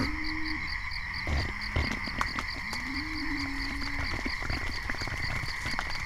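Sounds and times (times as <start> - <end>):
town ambience: 0.1 - 6.0.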